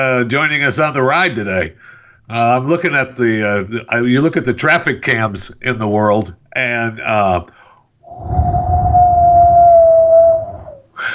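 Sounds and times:
speech: 0.0 - 7.6
wind blowing sound effect: 8.0 - 10.9
low rumbling roar: 8.1 - 10.8.

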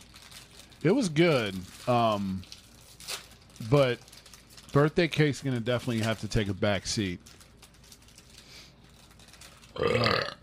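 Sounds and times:
speech: 0.8 - 2.5, 3.6 - 4.1, 4.7 - 7.4, 9.8 - 10.2
loud belch: 9.8 - 10.4.

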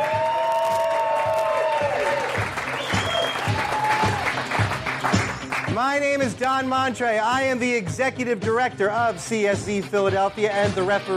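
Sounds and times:
live audience whooping and cheering: 0.0 - 5.2
live audience clapping: 0.0 - 6.7
speech: 5.8 - 11.1.

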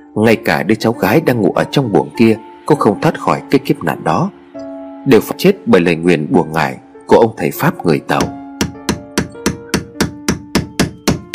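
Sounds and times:
speech: 0.2 - 4.4, 5.0 - 8.4
hammering an iron nail into a wooden bed leg: 8.2 - 11.3.

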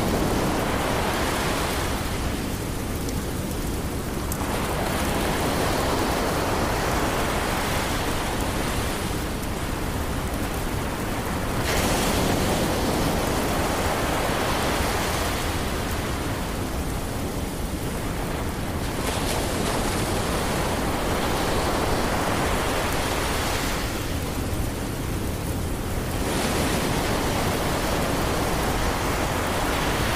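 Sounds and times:
gentle rain: 0.0 - 30.1
ocean waves: 0.0 - 30.1.

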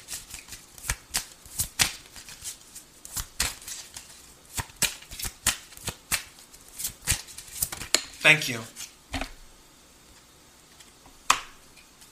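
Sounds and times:
tarot cards being shuffled and drawn: 0.0 - 8.0
speech: 8.2 - 8.8.

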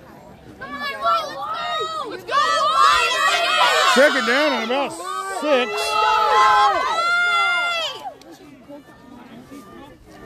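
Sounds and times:
large football stadium crowd roaring and cheering: 0.6 - 8.2
speech: 4.0 - 7.0.

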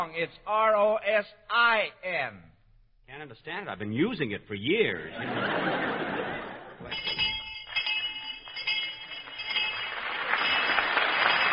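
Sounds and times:
speech: 0.0 - 2.5, 3.1 - 7.3
laughter: 5.0 - 7.0
high-pitched bell ringing: 6.9 - 11.5.

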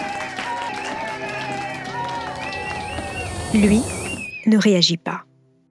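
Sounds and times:
courtroom audience applauding loudly: 0.0 - 4.4
speech: 3.5 - 5.3.

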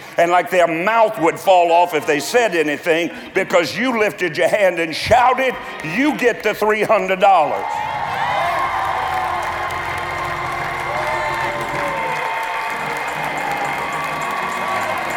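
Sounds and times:
speech: 0.2 - 7.9
audience clapping: 7.7 - 15.1.

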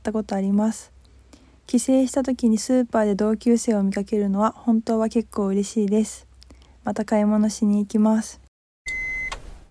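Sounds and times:
speech: 0.0 - 1.0, 1.7 - 8.4
short electronic beep of a radio show jingle: 8.9 - 9.6.

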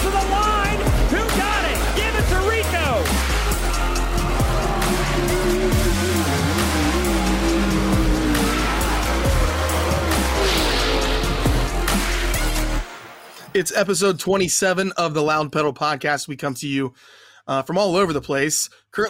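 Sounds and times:
race car engines roaring: 0.0 - 12.8
race car tires squealing: 4.2 - 12.8
speech: 13.6 - 19.0.

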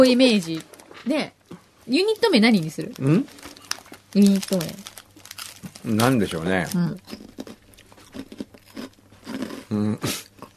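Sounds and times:
speech: 0.0 - 3.5, 4.1 - 4.9, 5.8 - 7.3, 9.7 - 10.2
someone chewing ginshari-flavour onigiri senbei rice crackers: 2.9 - 10.5.

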